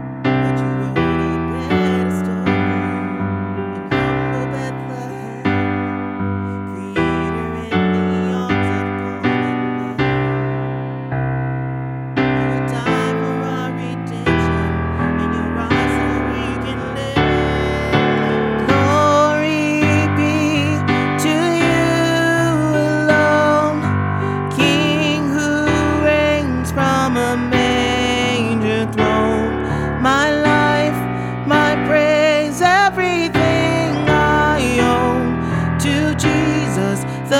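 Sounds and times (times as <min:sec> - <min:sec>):
alto voice singing lead in a Christmas choir: 0:00.3 - 0:11.3, 0:12.2 - 0:37.3
Christmas choir singing with alto lead: 0:33.3 - 0:35.1.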